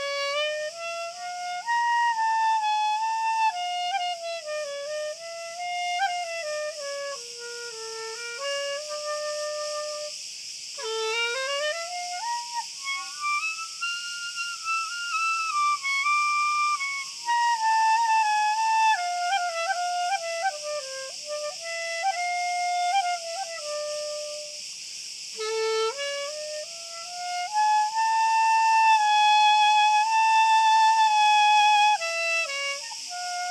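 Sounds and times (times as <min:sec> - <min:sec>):
cricket song continuous high shrill trill: 0:00.0 - 0:33.4.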